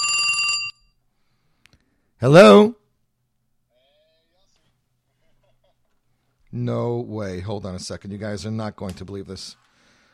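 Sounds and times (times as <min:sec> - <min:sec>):
telephone ringing with bright electronic tone: 0:00.0 - 0:01.0
speech: 0:02.2 - 0:02.7, 0:06.7 - 0:09.7.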